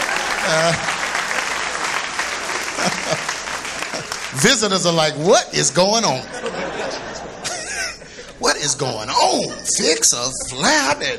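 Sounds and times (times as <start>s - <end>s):
laughter: 0.0s - 4.8s, 6.0s - 11.1s
audience clapping: 0.0s - 5.2s
speech: 0.5s - 0.9s, 4.4s - 7.4s, 8.4s - 11.1s.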